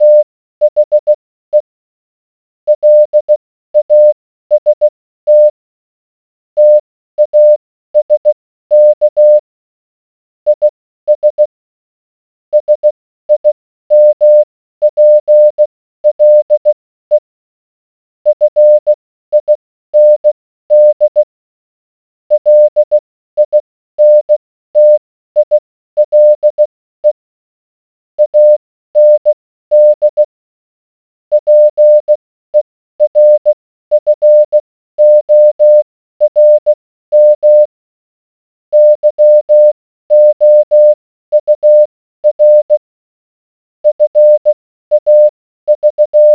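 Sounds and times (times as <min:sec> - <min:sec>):
morse code beeps: 0:00.0 - 0:01.6, 0:02.7 - 0:05.5, 0:06.6 - 0:09.4, 0:10.6 - 0:11.4, 0:12.6 - 0:17.2, 0:18.3 - 0:21.3, 0:22.3 - 0:27.2, 0:28.2 - 0:30.3, 0:31.3 - 0:32.2, 0:33.0 - 0:37.7, 0:38.7 - 0:42.8, 0:43.8 - 0:46.3.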